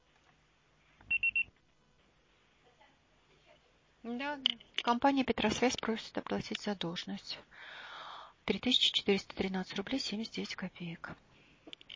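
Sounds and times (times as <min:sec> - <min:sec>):
faint hum: 0:00.0 - 0:11.9
voicemail beep tone: 0:01.1 - 0:01.5
speech: 0:04.0 - 0:07.8, 0:08.5 - 0:11.2.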